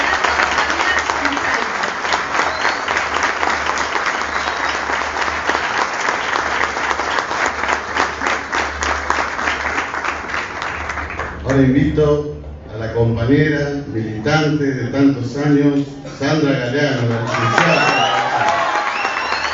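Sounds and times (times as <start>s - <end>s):
audience applause: 0.0s - 11.4s, 17.1s - 19.5s
speech: 11.6s - 12.3s, 13.0s - 18.0s.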